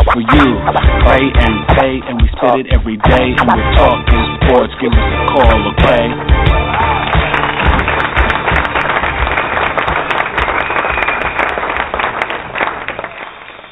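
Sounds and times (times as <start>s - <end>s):
speech: 0.1s - 6.3s
fans clapping in the background: 5.5s - 13.7s.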